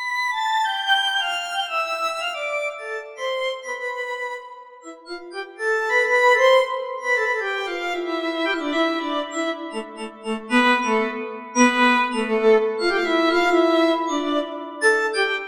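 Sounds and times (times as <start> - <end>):
violin: 0.0 - 15.4.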